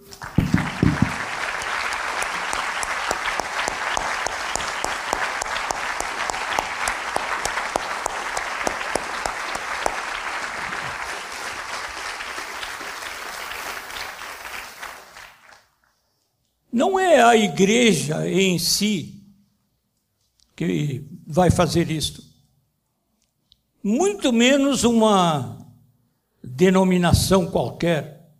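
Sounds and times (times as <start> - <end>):
audience applause: 0.0 - 15.8
speech: 16.9 - 19.2, 20.6 - 22.2, 23.8 - 25.6, 26.4 - 28.1.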